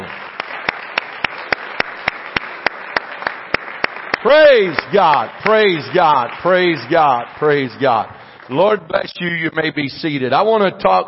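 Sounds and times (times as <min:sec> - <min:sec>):
audience clapping hands: 0:00.0 - 0:08.8
speech: 0:04.2 - 0:11.0.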